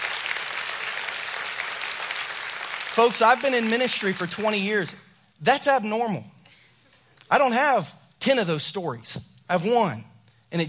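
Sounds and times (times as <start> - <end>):
audience applause: 0.0 - 4.5
speech: 3.0 - 6.3, 7.3 - 10.6.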